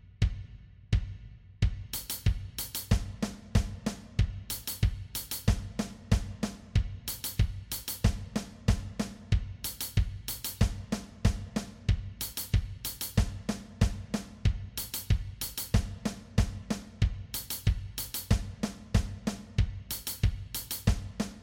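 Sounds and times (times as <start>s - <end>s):
drum kit playing: 1.7s - 21.4s.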